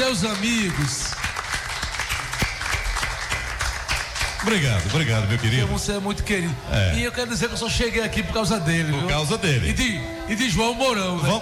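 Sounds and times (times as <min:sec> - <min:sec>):
speech: 0:00.0 - 0:01.3, 0:04.4 - 0:11.3
audience clapping for a guest on stage: 0:00.0 - 0:06.0.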